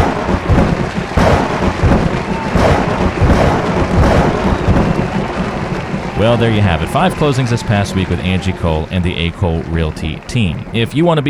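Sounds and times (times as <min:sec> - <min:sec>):
big claps of thunder: 0:00.0 - 0:11.2
laughter: 0:00.2 - 0:11.2
speech: 0:06.2 - 0:11.2.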